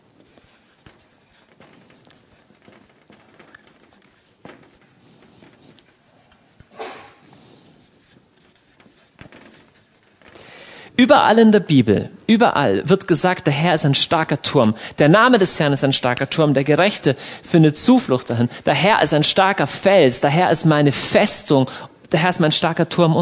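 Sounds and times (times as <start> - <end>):
pen scratching across paper writing by hand: 0.0 - 10.4
speech: 11.0 - 23.1.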